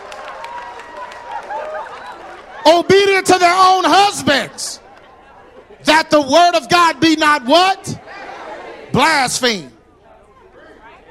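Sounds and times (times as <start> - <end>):
audience clapping: 0.0 - 2.6
speech: 2.6 - 4.8, 5.9 - 8.0, 9.0 - 9.7.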